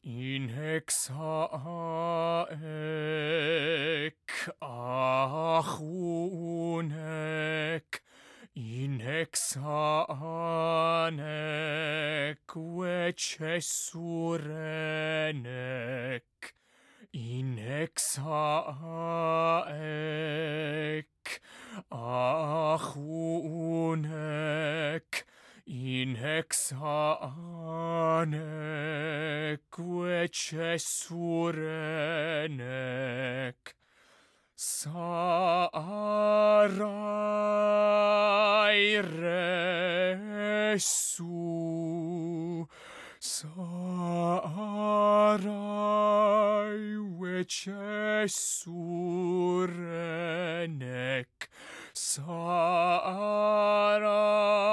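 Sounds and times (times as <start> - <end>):
religious song: 0.0 - 54.7.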